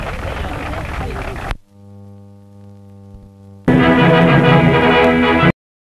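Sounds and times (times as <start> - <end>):
German march music: 3.7 - 5.5.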